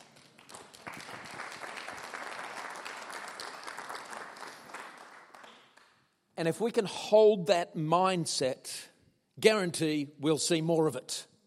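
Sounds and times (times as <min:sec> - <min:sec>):
crowd applause: 0:00.0 - 0:05.8
speech: 0:06.4 - 0:11.3.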